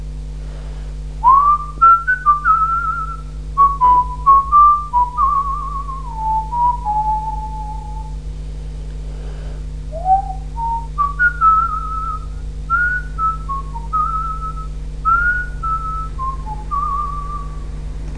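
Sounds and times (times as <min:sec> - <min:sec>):
person whistling: 0:01.2 - 0:08.2, 0:09.9 - 0:17.6.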